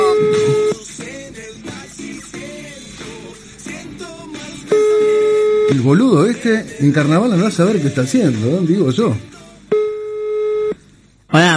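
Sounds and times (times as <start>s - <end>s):
telephone ringing: 0.0s - 0.8s, 4.7s - 6.1s, 9.7s - 10.8s
speech: 5.7s - 9.4s.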